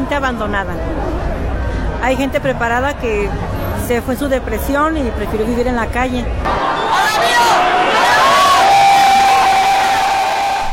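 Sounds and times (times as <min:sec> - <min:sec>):
speech: 0:00.1 - 0:01.1, 0:02.0 - 0:06.6
wrestling crowd shouting with euphoria: 0:06.5 - 0:10.7.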